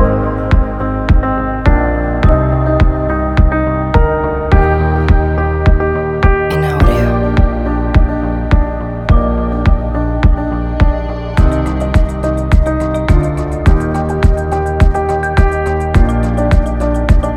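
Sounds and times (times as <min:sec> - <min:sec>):
ambient piano music: 0:00.0 - 0:17.3.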